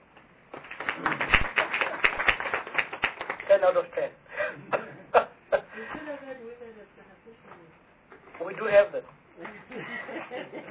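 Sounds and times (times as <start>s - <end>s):
round of applause: 0.5s - 3.9s
speech: 3.6s - 5.2s, 5.8s - 10.6s
laughter: 9.6s - 10.6s.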